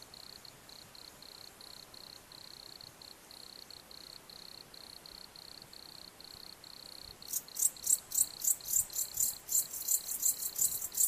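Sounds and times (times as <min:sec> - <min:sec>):
crickets chirping: 0:00.0 - 0:11.0
steady background hiss: 0:00.0 - 0:11.0.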